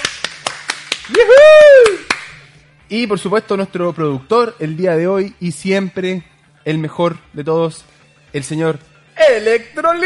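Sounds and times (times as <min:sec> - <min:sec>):
rhythmic applause: 0:00.0 - 0:02.6
loud sustained whooping cheer: 0:01.1 - 0:02.1
speech: 0:02.9 - 0:10.0.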